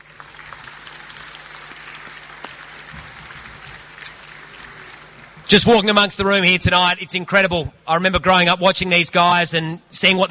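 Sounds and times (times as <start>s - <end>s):
audience applause welcoming championship-winning National Soccer League teams: 0.0s - 5.9s
speech: 5.5s - 10.2s.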